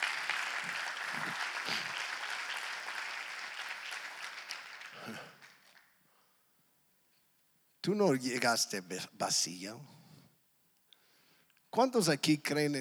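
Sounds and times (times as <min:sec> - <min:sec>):
audience applause: 0:00.0 - 0:05.9
speech: 0:07.9 - 0:10.0, 0:11.8 - 0:12.7.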